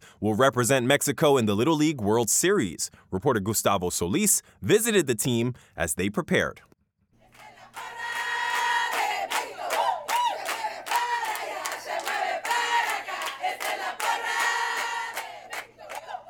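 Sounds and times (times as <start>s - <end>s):
speech: 0.2s - 6.7s
parents cheering at a Little League game: 7.4s - 16.2s.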